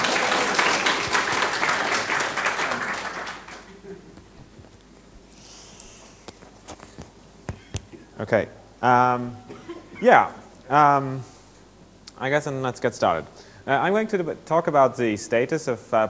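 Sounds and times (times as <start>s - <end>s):
audience applause: 0.0s - 3.8s
speech: 8.2s - 11.3s, 12.2s - 16.0s.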